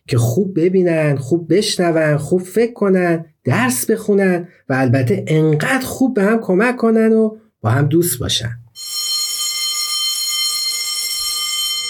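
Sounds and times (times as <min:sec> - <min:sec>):
speech: 0:00.1 - 0:08.6
electric school bell ringing: 0:08.8 - 0:11.8.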